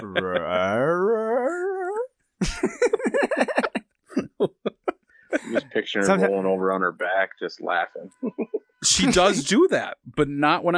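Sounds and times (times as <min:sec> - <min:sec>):
laughter: 0:00.0 - 0:00.8, 0:02.4 - 0:06.4
person imitating a dog's vocal inflection: 0:00.0 - 0:02.1
speech: 0:00.2 - 0:00.9, 0:05.8 - 0:10.7.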